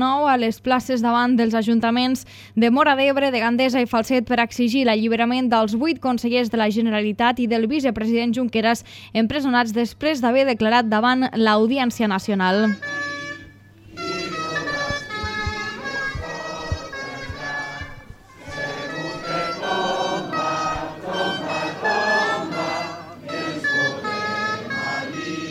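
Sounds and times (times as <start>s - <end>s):
speech: 0.0s - 13.0s
gralla shawms playing a continuous melody: 12.7s - 25.5s
low drum thumps: 14.0s - 19.4s.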